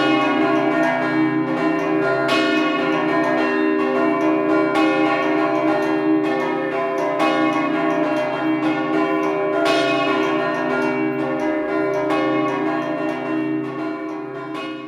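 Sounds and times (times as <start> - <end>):
bells ringing: 0.0 - 14.8.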